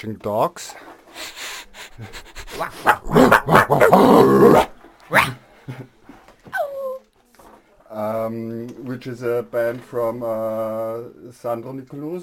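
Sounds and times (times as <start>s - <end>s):
speech: 0.0s - 1.4s, 2.0s - 5.9s, 8.0s - 12.2s
dogs growling and barking: 2.5s - 5.4s
dog yelping and whining: 2.6s - 5.4s, 6.5s - 7.0s.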